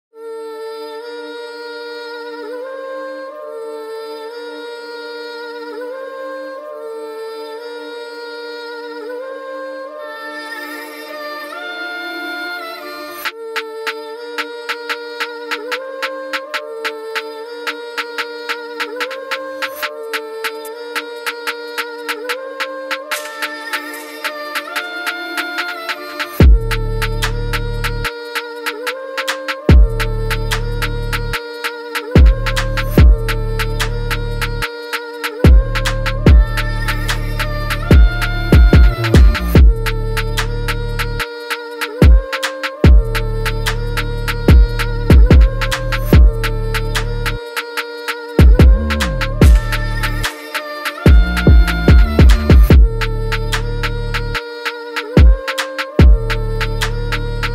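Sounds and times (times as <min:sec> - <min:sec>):
UK drill type beat: 0:13.6 - 0:57.5.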